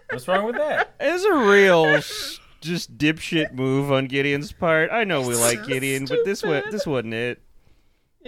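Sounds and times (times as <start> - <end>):
speech: 0.2 - 7.4
person imitating a cat meowing: 5.2 - 6.0.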